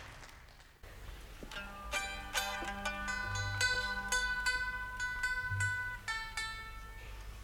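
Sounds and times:
blues music: 1.4s - 7.2s.

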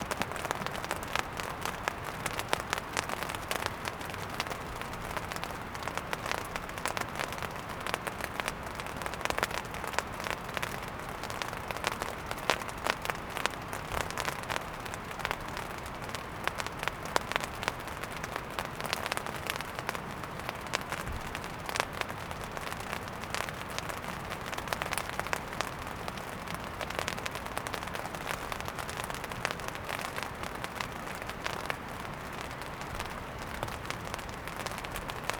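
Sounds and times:
light rain on a tent in Oregon: 0.0s - 35.3s.

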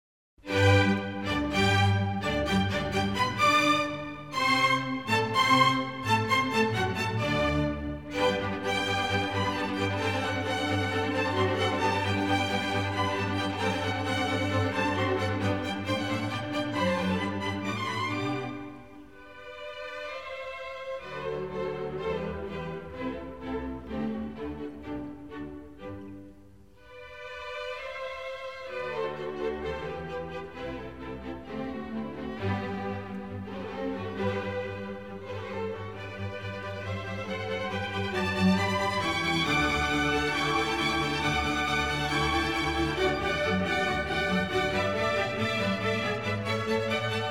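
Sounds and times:
string orchestra serenade in G: 0.4s - 47.2s.

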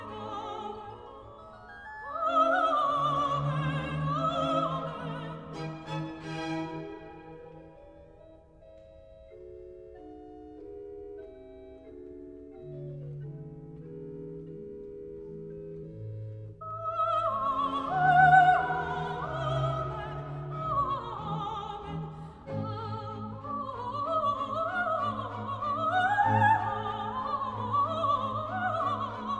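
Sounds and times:
sacred choral piece in F major: 0.0s - 7.9s, 16.6s - 29.3s.

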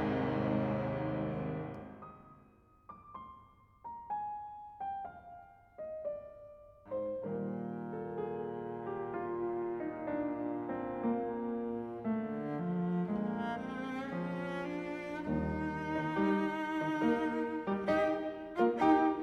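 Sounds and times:
cello: 0.0s - 2.0s, 6.9s - 19.2s
piano: 0.0s - 19.2s.

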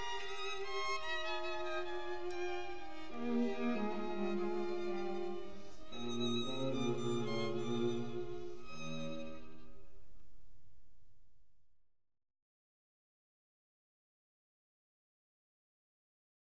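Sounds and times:
string quartet in E flat: 0.0s - 10.2s.

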